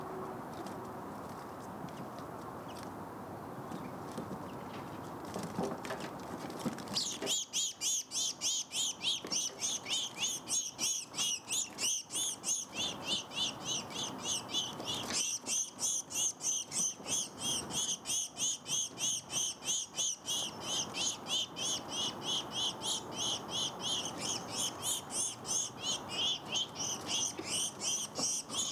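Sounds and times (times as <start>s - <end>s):
low noise: 0.0s - 28.7s
house sparrow chirping: 7.0s - 28.7s.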